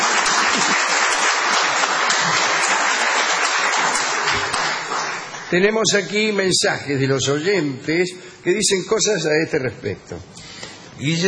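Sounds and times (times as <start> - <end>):
crowd applause: 0.0 - 5.5
speech: 5.5 - 11.2.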